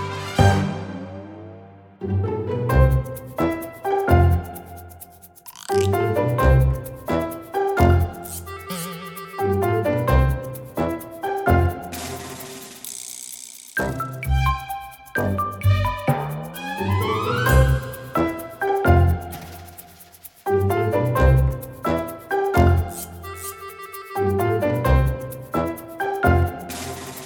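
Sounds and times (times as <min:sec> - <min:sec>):
cheerful children's comedy music: 0:00.0 - 0:12.8, 0:13.8 - 0:27.2.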